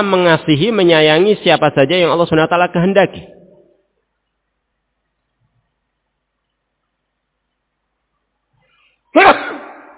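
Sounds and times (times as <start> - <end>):
speech: 0.0 - 3.4, 9.2 - 9.4
sneeze: 9.2 - 9.9.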